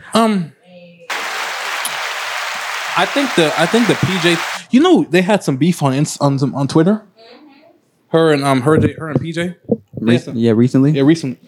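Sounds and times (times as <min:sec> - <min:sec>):
speech: 0:00.2 - 0:00.6, 0:03.0 - 0:07.4, 0:08.1 - 0:11.4
round of applause: 0:01.1 - 0:04.6.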